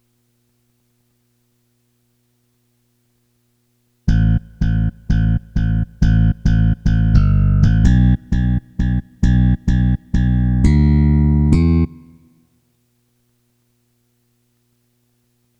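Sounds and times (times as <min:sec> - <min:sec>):
bass: 0:04.1 - 0:12.3.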